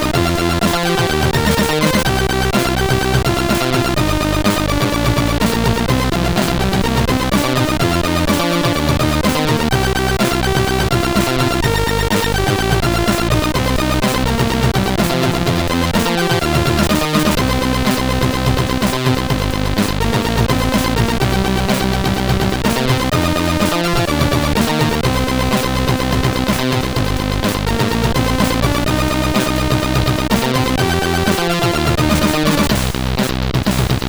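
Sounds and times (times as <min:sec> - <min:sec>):
bass beat: 0:00.0 - 0:34.0.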